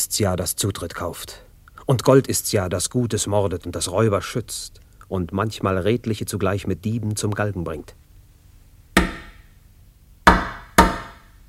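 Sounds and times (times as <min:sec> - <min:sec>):
speech: 0:00.0 - 0:08.0
knocking on a wooden door: 0:09.0 - 0:09.4, 0:10.3 - 0:11.2.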